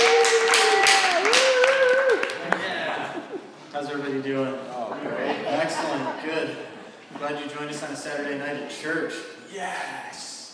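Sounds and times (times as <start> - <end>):
voices whooping and calling out: 0.0 - 2.4
audience applause: 0.0 - 2.8
laughter: 2.4 - 3.6, 4.9 - 6.9
speech: 5.8 - 10.3.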